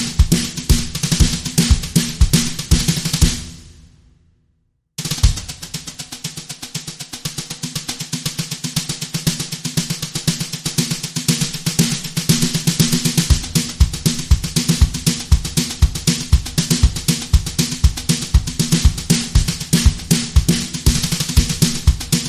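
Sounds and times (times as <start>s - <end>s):
kick drum: 0.0s - 3.8s, 5.1s - 6.1s, 12.4s - 22.2s
drum brushes: 0.0s - 4.0s, 5.0s - 22.2s.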